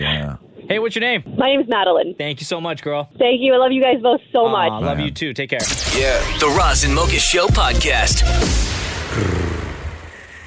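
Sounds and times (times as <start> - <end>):
speech: 0.7 - 9.5
person imitating a cat's purr: 9.1 - 9.7.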